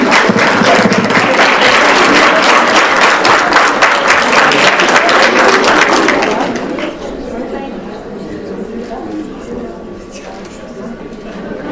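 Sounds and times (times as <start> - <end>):
applause for Erasmus+ project winners at an awards presentation: 0.0 - 7.0.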